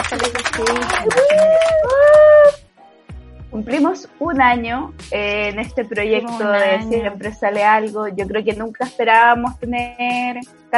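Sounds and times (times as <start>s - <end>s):
clapping: 0.0s - 2.6s
speech: 0.1s - 1.9s, 3.6s - 10.7s
high sustained cheer or whoop: 0.9s - 2.6s.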